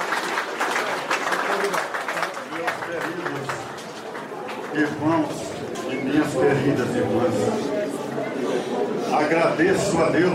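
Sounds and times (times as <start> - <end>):
crowd applauding: 0.0 - 6.4
indistinct murmuring voices: 0.0 - 10.3
speech: 4.7 - 5.4, 6.1 - 7.7, 8.6 - 10.3.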